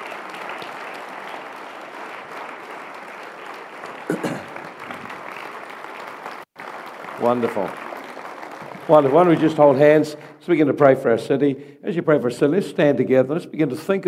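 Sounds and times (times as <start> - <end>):
audience applause: 0.0 - 10.2
speech: 7.2 - 7.8, 8.9 - 14.0.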